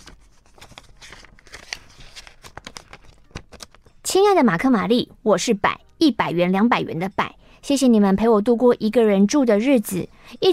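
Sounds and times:
stiff green paper envelope crinkling and rustling: 0.0 - 3.9
speech: 4.1 - 10.5.

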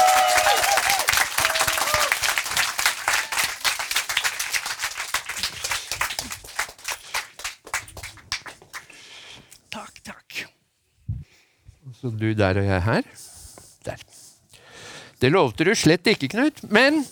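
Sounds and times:
audience applause: 0.0 - 8.9
speech: 12.0 - 13.2, 15.2 - 17.0.

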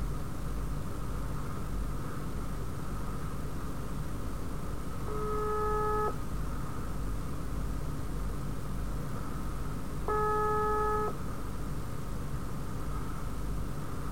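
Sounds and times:
constant low rumble and hiss: 0.0 - 14.0
telephone call ringing tone: 5.1 - 6.2, 10.1 - 11.2.

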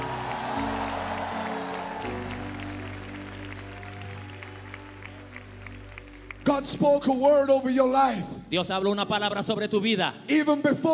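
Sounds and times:
audience shouting praise and applauding: 0.0 - 7.2
low held keyboard chords: 0.0 - 7.8
speech: 6.5 - 10.9.

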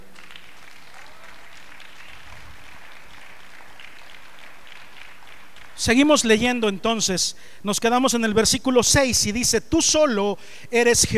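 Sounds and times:
audience applause: 0.0 - 6.2
speech: 5.8 - 11.1.

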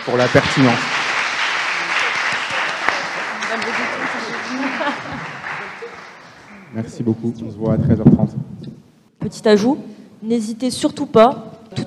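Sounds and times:
speech: 0.0 - 0.9, 3.5 - 11.8
audience applause: 0.0 - 7.0
laughter: 1.8 - 6.7.

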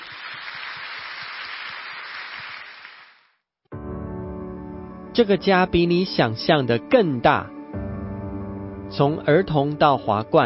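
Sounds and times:
audience clapping hands: 0.0 - 3.4
speech: 5.2 - 7.5, 8.9 - 10.4.

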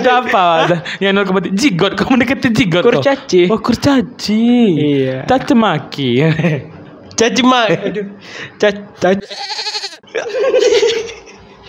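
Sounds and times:
laughter: 0.0 - 1.0, 10.1 - 11.6
speech: 0.0 - 11.2
goats bleating: 9.2 - 10.1.

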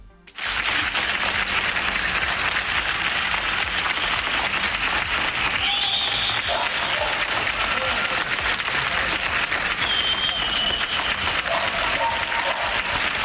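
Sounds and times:
applause from balconies across the country: 0.3 - 13.2
faint whistles and cheers: 5.5 - 8.3, 9.7 - 12.8.

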